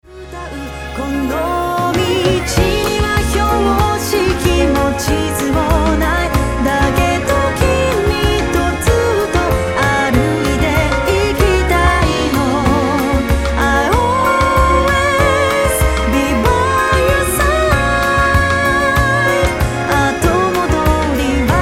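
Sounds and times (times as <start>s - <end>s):
strings: 0.1s - 21.6s.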